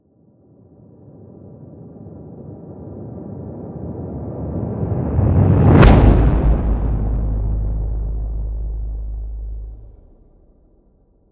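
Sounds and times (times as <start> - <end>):
distorted swell to impact: 5.8 - 10.1.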